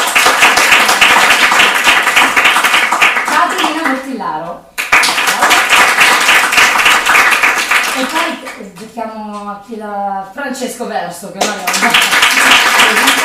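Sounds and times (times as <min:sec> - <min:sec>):
crowd applause: 0:00.0 - 0:03.8, 0:04.8 - 0:08.4, 0:11.6 - 0:13.2
speech: 0:04.4 - 0:04.7, 0:08.3 - 0:13.2.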